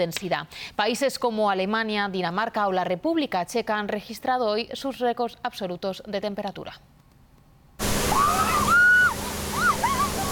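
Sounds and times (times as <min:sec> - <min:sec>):
speech: 0:00.0 - 0:07.0
police water cannon spraying water: 0:07.8 - 0:10.3.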